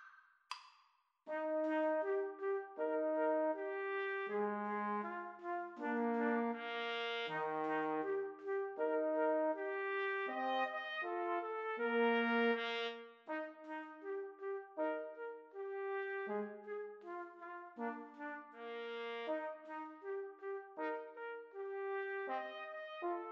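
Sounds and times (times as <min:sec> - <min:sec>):
trombone: 0:01.3 - 0:23.3
two trumpets: 0:01.3 - 0:23.3.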